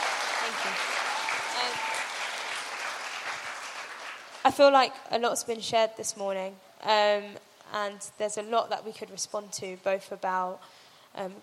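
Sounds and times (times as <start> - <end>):
crowd clapping: 0.0 - 4.6
speech: 0.5 - 1.0, 4.4 - 11.4.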